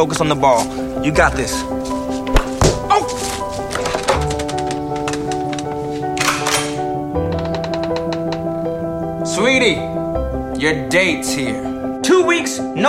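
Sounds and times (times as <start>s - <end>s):
speech: 0.0s - 2.0s, 9.4s - 9.9s, 10.6s - 12.8s
sustained music tones: 0.0s - 12.0s
door slamming: 2.2s - 8.9s.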